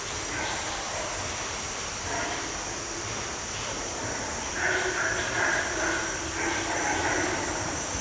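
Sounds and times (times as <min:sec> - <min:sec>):
white-lipped peccary grunting in South American rainforest: 0:00.2 - 0:07.8.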